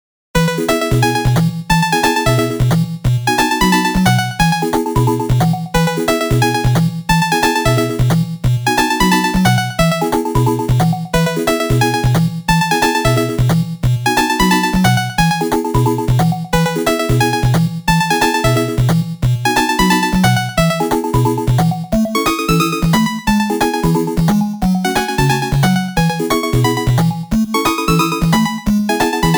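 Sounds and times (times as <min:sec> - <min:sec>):
8-bit background music: 0:00.4 - 0:29.3.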